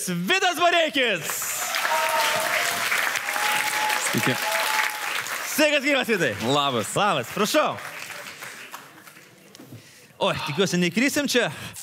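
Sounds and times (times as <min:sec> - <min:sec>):
speech: 0:00.0 - 0:03.0, 0:03.8 - 0:04.6, 0:05.6 - 0:07.9, 0:10.2 - 0:11.8
studio audience applauding to welcome a guest performer: 0:01.2 - 0:09.4.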